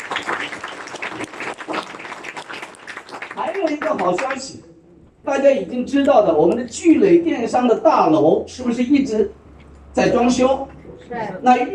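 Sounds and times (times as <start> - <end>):
audience applause: 0.0 - 4.4
speech: 3.6 - 4.6, 5.3 - 9.4, 10.0 - 11.7.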